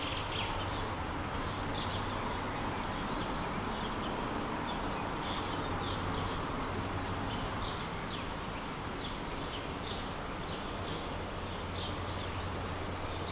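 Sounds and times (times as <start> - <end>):
road noise on a May morning: 0.0 - 13.3.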